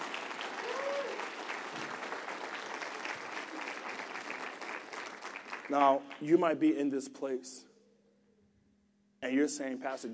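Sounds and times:
audience hand clapping: 0.0s - 6.4s
speech: 5.7s - 7.7s, 9.2s - 10.1s.

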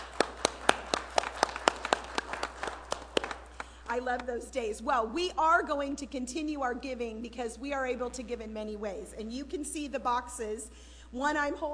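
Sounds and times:
applause: 0.0s - 3.8s
speech: 4.0s - 11.7s.

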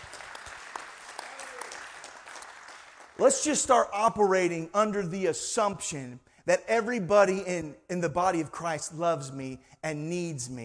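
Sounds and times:
church congregation hand clap of praise: 0.0s - 3.8s
speech: 3.2s - 10.6s.

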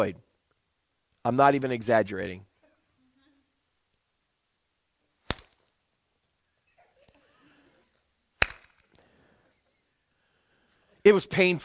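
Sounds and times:
speech: 0.0s - 0.3s, 1.2s - 2.5s, 11.0s - 11.6s
awkward hand claps: 8.4s - 8.8s.

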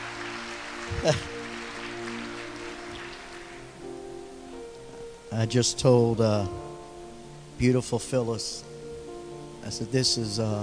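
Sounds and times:
audience applause: 0.0s - 3.7s
speech: 0.9s - 1.4s, 5.3s - 6.7s, 7.6s - 8.7s, 9.6s - 10.6s.

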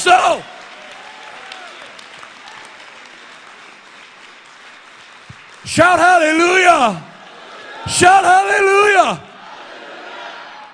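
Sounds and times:
audience clapping hands: 0.0s - 8.2s
speech: 5.7s - 7.1s, 7.8s - 9.3s.

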